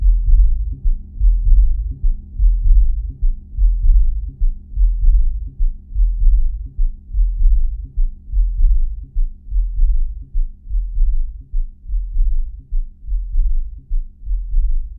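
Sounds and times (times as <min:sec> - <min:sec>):
Akai S3000XL sampler low end tones: 0:00.0 - 0:14.9.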